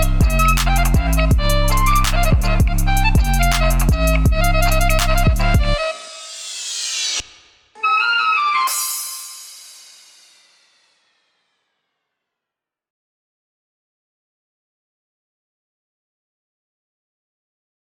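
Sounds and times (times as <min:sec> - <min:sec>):
Nokia Arabic ringtone trap remix: 0:00.0 - 0:05.8.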